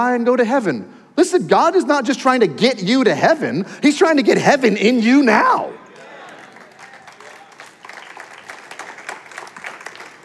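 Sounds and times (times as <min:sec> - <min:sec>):
speech: 0:00.0 - 0:05.8
audience clapping: 0:05.8 - 0:10.2.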